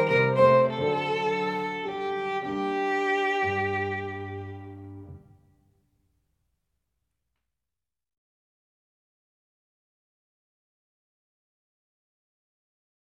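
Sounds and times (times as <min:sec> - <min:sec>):
gavotte in G minor on violin: 0:00.0 - 0:05.3.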